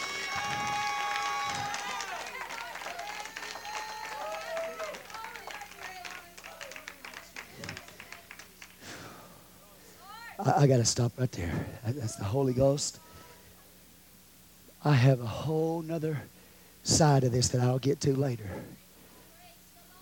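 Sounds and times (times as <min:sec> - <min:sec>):
audience hand clapping: 0:00.0 - 0:09.0
speech: 0:10.4 - 0:13.0, 0:14.8 - 0:18.8.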